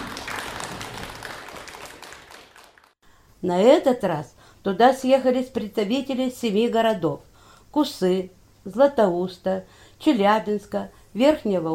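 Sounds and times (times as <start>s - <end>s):
audience applause: 0.0s - 3.0s
speech: 3.4s - 11.7s.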